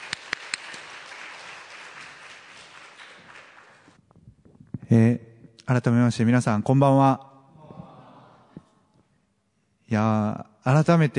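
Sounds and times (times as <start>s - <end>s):
audience applause: 0.0s - 4.0s
speech: 4.9s - 7.3s, 10.0s - 11.1s.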